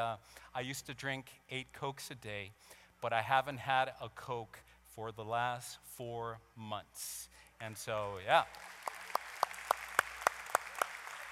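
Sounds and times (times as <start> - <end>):
soft hiss: 0.0 - 11.2
speech: 0.1 - 8.8
audience clapping in unison: 8.0 - 11.2.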